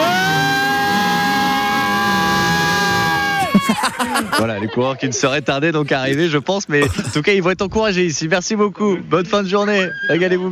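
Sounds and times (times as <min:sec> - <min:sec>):
crowd shouting and cheering: 0:00.0 - 0:04.7
laughter: 0:03.1 - 0:07.4
speech: 0:04.3 - 0:10.4.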